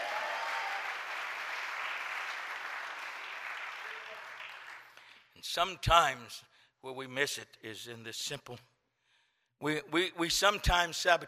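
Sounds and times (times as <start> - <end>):
audience clapping hands: 0.0 - 5.3
speech: 5.4 - 8.7, 9.6 - 11.2.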